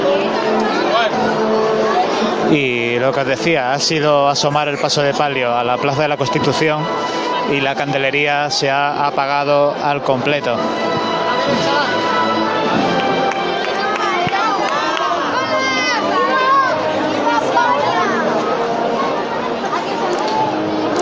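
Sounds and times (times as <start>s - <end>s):
dozens of children chattering and shouting in a plaza: 0.0s - 21.0s
speech: 2.5s - 11.7s.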